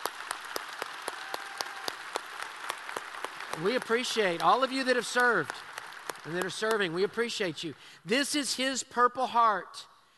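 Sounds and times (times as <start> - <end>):
round of applause for soldiers: 0.0 - 7.6
speech: 3.6 - 9.9.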